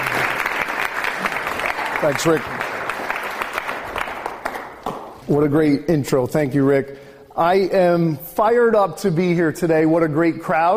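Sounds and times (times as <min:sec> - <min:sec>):
audience applause: 0:00.0 - 0:05.0
speech: 0:02.0 - 0:02.6, 0:05.3 - 0:10.7.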